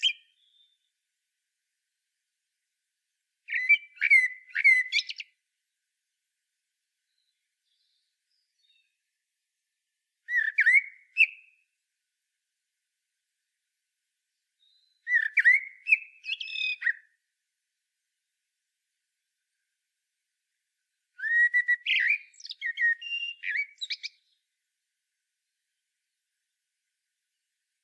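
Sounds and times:
common blackbird song: 0.0 - 1.0, 3.4 - 5.4, 7.0 - 9.2, 10.2 - 11.8, 14.3 - 17.2, 21.1 - 24.6.

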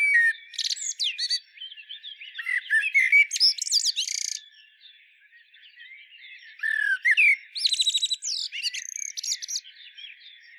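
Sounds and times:
common blackbird singing: 0.0 - 10.5.

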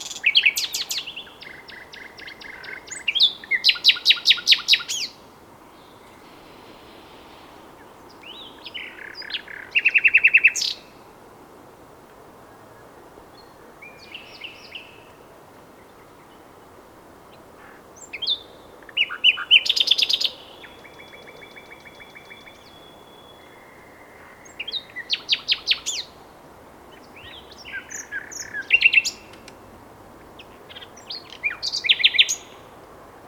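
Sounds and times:
common nightingale singing: 0.0 - 10.9, 13.3 - 15.2, 18.0 - 26.2, 26.9 - 29.6, 30.2 - 32.7.

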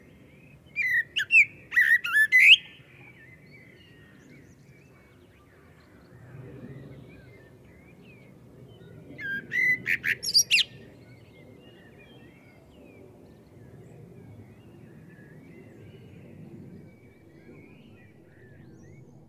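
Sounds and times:
common blackbird whistling: 0.8 - 2.8, 9.2 - 10.8.

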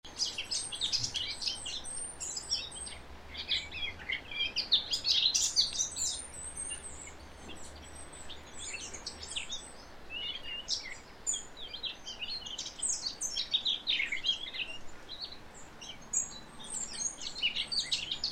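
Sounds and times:
Eurasian blackcap Sylvia atricapilla singing: 0.0 - 18.3.

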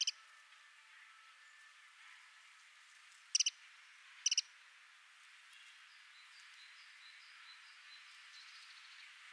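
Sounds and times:
Eurasian wren rattling ticks: 3.3 - 3.5, 4.2 - 4.4.

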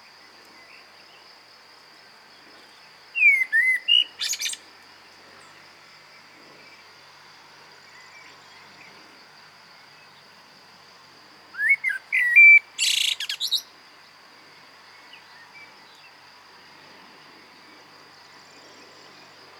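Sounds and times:
common blackbird singing: 3.2 - 4.6, 11.6 - 13.7.

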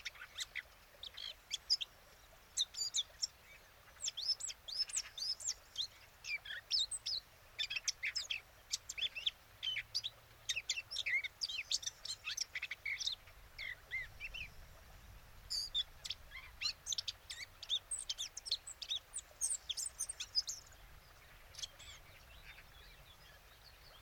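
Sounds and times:
small birds faintly: 0.0 - 24.0
Eurasian blackcap chattering: 2.6 - 14.6, 15.5 - 24.0.

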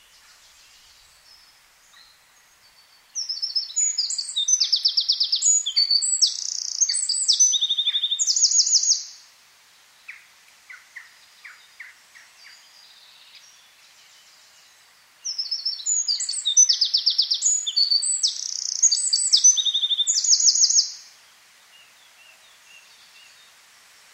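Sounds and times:
Eurasian wren singing rapid trills: 3.2 - 9.1, 15.3 - 21.0.

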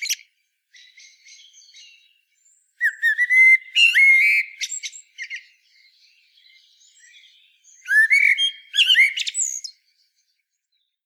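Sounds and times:
Eurasian blackbird singing: 0.0 - 11.0.

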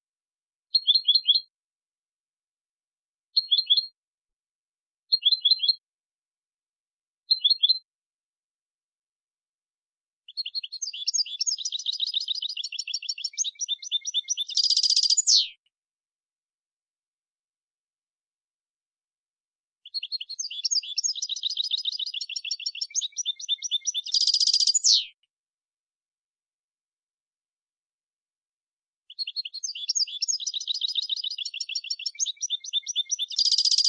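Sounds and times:
European goldfinch Carduelis carduelis singing: 0.7 - 1.5, 3.4 - 4.0, 5.1 - 5.8, 7.3 - 7.9, 10.3 - 15.5, 19.8 - 25.2, 29.1 - 33.8.

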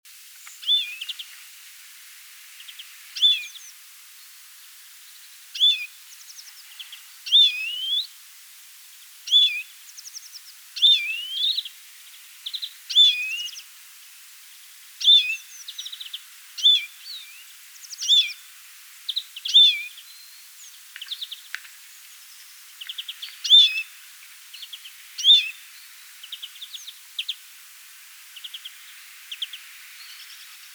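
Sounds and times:
hiss: 0.1 - 30.7
European greenfinch calls: 0.6 - 1.2, 3.2 - 3.7, 5.6 - 8.1, 9.3 - 11.7, 12.4 - 13.6, 15.0 - 18.4, 19.1 - 20.0, 22.8 - 23.9, 24.6 - 25.6.

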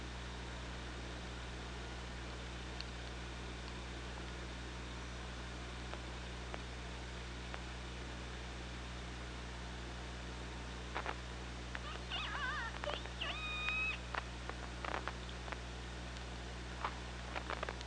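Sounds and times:
low hum: 0.0 - 17.8
killer whale tonal pulsed calls: 11.8 - 14.0.

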